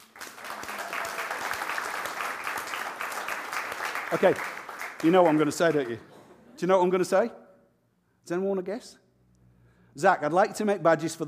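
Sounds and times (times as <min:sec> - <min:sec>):
audience clapping: 0:00.0 - 0:06.1
speech: 0:04.1 - 0:07.4, 0:08.2 - 0:09.0, 0:10.0 - 0:11.2.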